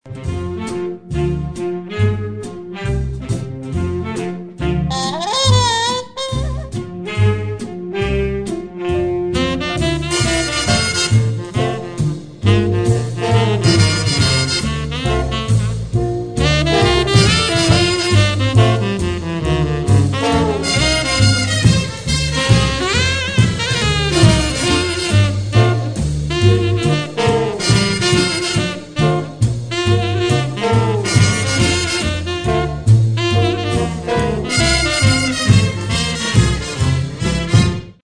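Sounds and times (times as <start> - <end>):
big band classics: 0.0 - 38.0.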